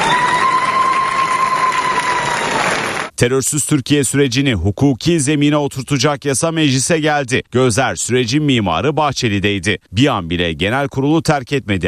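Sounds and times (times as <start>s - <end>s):
lawmakers clapping in the Turkish parliament: 0.0s - 3.2s
speech: 3.2s - 11.8s.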